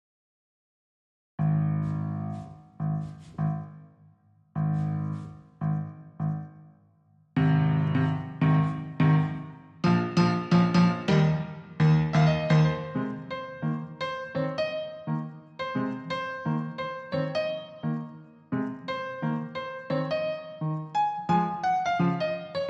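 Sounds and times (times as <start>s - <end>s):
clean piano: 1.4s - 6.8s, 7.4s - 22.6s.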